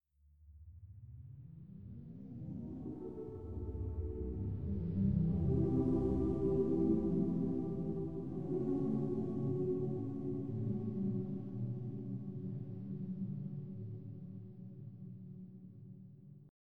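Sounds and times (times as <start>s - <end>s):
choir singing space voices: 2.8s - 14.3s.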